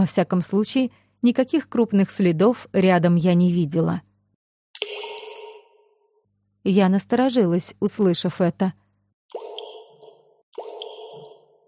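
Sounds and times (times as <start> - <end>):
speech: 0.0 - 4.1, 6.6 - 8.8
water drops from stones falling into a small puddle: 4.8 - 5.8, 9.3 - 11.6.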